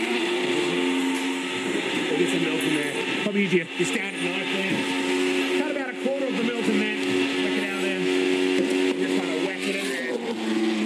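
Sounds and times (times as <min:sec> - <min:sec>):
blender running: 0:00.0 - 0:10.8
speech: 0:03.2 - 0:05.0.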